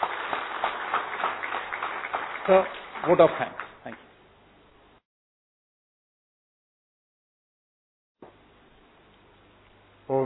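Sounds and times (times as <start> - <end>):
audience applause: 0.0 - 4.0
speech: 2.4 - 3.6.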